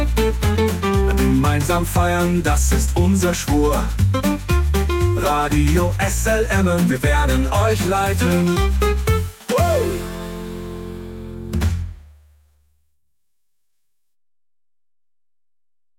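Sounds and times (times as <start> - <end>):
swing music: 0.0 - 12.1.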